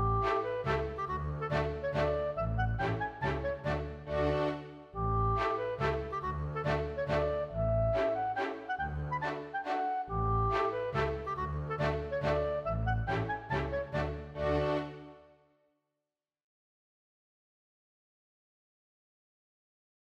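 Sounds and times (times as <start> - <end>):
polka mazurka music: 0.0 - 15.2.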